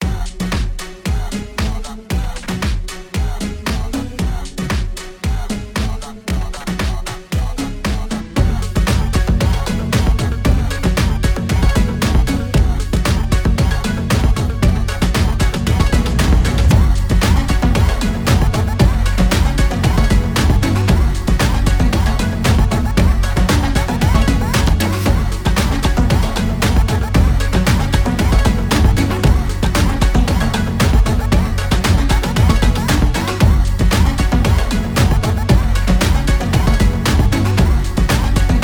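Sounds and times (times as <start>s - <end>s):
phonk music: 0.0s - 38.6s.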